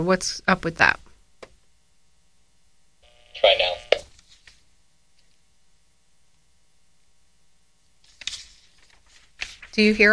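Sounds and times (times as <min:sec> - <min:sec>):
speech: 0:00.0 - 0:01.0, 0:09.8 - 0:10.1
papers being moved and rustled: 0:04.1 - 0:04.6, 0:08.0 - 0:10.1.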